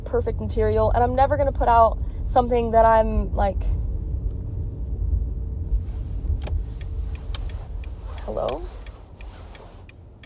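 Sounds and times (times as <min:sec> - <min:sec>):
road rumble inside a moving car: 0:00.0 - 0:10.2
speech: 0:00.1 - 0:03.8, 0:08.3 - 0:08.8
faint ticks: 0:06.4 - 0:10.2.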